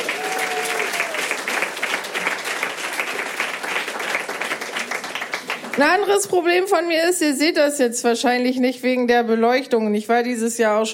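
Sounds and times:
audience applause: 0.0s - 6.1s
speech: 5.8s - 10.9s.

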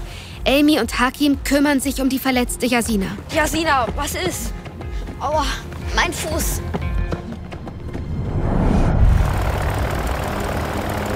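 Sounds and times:
speech: 0.4s - 6.8s
airplane engine starting up: 8.6s - 11.1s.

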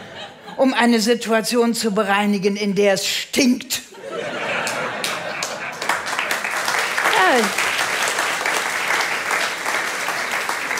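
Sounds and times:
laughter: 0.0s - 0.6s, 3.9s - 6.5s
speech: 0.6s - 3.9s, 7.3s - 7.6s
audience applause: 4.6s - 10.7s.

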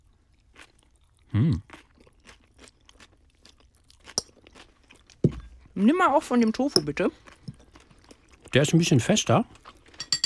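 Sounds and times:
crunchy chewing of rice noodle salad with grated vegetables: 0.0s - 5.8s, 7.1s - 8.7s, 9.4s - 10.0s
speech: 1.4s - 1.7s, 5.8s - 7.3s, 8.5s - 9.6s.

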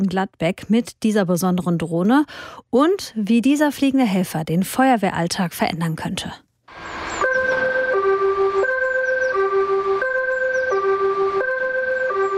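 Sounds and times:
speech: 0.0s - 7.0s
fire station alarm gong: 6.7s - 12.3s.

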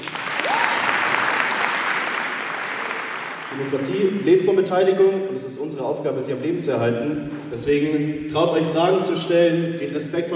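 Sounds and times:
audience applause: 0.0s - 4.2s
speech: 3.6s - 10.3s.

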